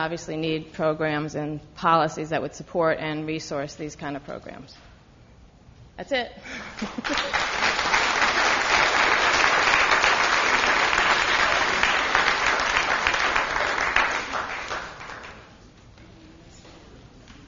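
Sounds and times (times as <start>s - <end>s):
speech: 0.0s - 4.9s, 6.0s - 7.5s
audience applause: 6.8s - 15.5s.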